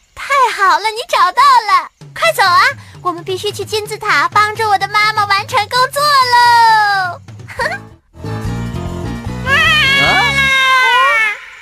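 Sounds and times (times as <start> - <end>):
speech: 0.6 - 7.2
baby jaguar crying: 9.5 - 11.5.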